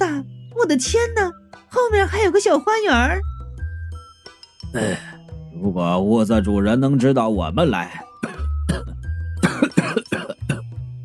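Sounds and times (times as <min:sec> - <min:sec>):
speech: 0:00.2 - 0:03.4, 0:04.7 - 0:08.0
man coughing: 0:04.8 - 0:05.2, 0:08.0 - 0:10.7.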